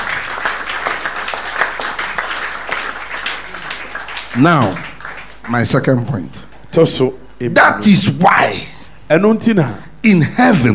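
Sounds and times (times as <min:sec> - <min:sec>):
crowd applause: 0:00.0 - 0:06.6
speech: 0:04.4 - 0:04.9, 0:05.5 - 0:10.7.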